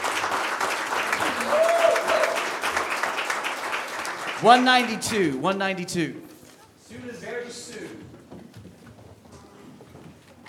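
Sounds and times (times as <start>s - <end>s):
audience clapping: 0.0s - 6.1s
speech: 4.4s - 6.3s.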